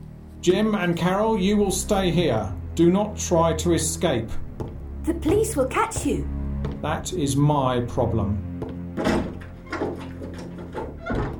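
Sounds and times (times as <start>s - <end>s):
speech: 0.4s - 9.2s
door being shut and locked: 9.0s - 11.3s.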